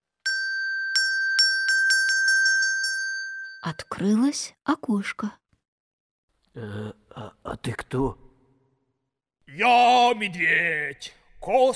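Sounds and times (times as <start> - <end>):
small bell ringing: 0.2 - 4.0
speech: 3.6 - 5.4, 6.6 - 8.2, 9.5 - 11.7.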